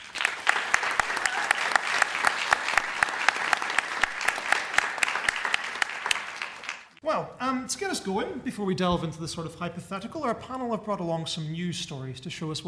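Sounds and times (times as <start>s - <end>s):
audience applause: 0.0s - 7.0s
speech: 7.1s - 12.6s.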